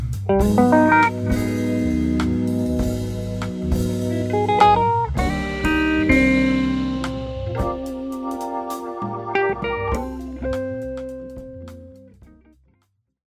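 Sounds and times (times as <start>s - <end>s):
organ grinders instrumental trio: 0.0s - 12.1s.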